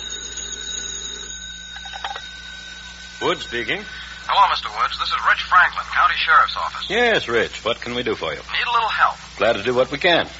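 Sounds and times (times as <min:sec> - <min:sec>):
telephone ringing: 0:00.0 - 0:06.9
steady low electrical hum: 0:00.0 - 0:10.3
speech: 0:03.2 - 0:10.3.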